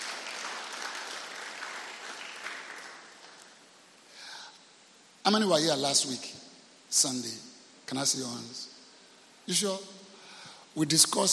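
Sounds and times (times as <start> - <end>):
audience clapping hands: 0.0 - 3.6
speech: 5.3 - 8.7, 9.5 - 10.0, 10.8 - 11.3.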